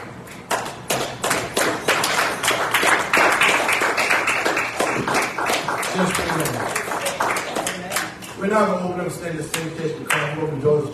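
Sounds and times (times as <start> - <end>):
audience clapping hands in praise: 0.5 - 8.4
speech: 8.5 - 10.9.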